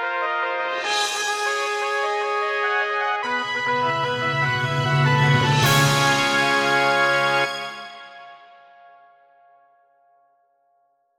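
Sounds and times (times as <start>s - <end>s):
fanfare: 0.1s - 8.9s.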